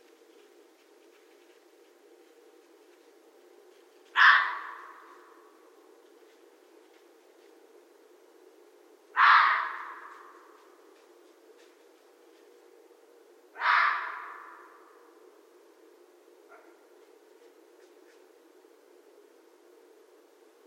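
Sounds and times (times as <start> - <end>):
red fox barking: 4.1 - 5.5, 9.1 - 10.6, 13.5 - 15.0, 16.5 - 16.9.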